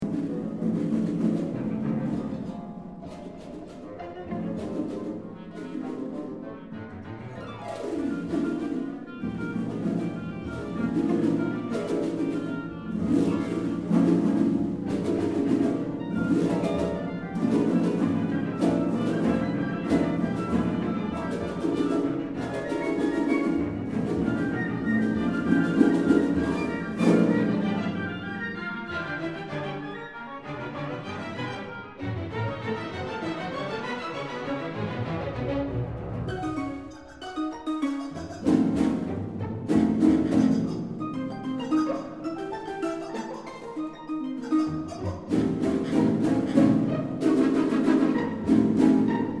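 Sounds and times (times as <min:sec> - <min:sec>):
harp and orchestra playing pentatonic music: 0:00.0 - 0:49.3.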